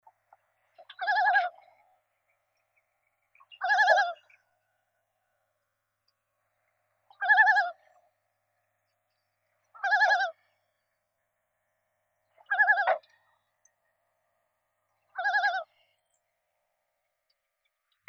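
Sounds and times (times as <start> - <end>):
loons calling on Christie Lake: 3.4 - 4.4, 7.1 - 8.0, 9.8 - 10.5, 12.4 - 13.3, 15.1 - 16.0.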